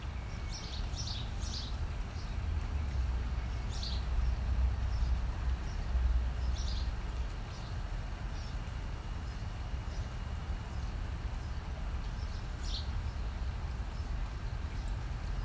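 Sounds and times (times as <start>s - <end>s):
birds chirping in trees in a patio in Los Angeles: 0.0s - 15.4s.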